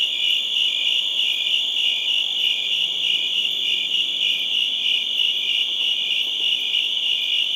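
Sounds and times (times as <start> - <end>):
chorus of crickets chirping: 0.0 - 7.5.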